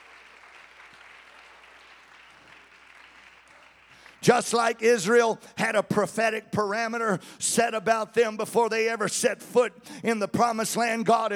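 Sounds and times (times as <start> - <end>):
audience clapping hands: 0.0 - 5.4
speech: 4.2 - 11.3.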